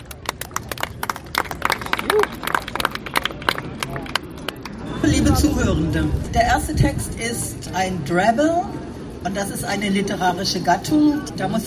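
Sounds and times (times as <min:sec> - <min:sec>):
audience applause for two authors: 0:00.0 - 0:04.8
speech: 0:05.4 - 0:11.6.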